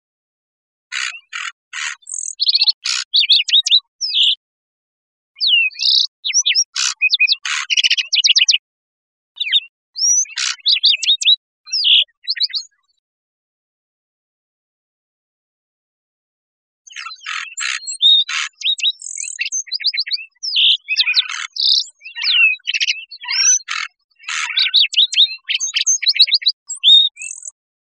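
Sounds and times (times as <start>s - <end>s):
lark sparrow singing: 0.9s - 4.4s, 5.4s - 8.6s, 9.4s - 13.0s, 16.9s - 27.9s.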